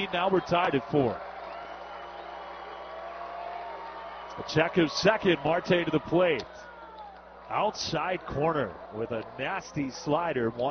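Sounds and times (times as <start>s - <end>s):
speech: 0.0s - 1.3s, 4.4s - 6.7s, 7.5s - 10.7s
crowd cheering at a minor-league baseball stadium during an I-Cubs game: 0.0s - 10.7s.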